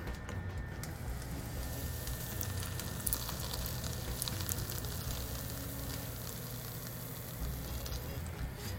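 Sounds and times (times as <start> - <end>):
batter sizzling in a frying pan: 0.8 - 8.7.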